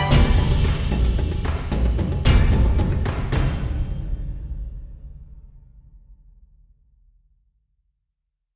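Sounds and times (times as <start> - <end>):
glitchy sacred music: 0.0 - 3.5.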